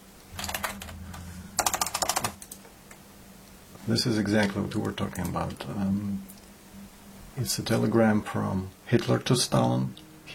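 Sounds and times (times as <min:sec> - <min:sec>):
computer keyboard typing a search query: 0:00.4 - 0:01.0, 0:01.6 - 0:02.6
speech: 0:03.9 - 0:06.3, 0:07.4 - 0:10.3.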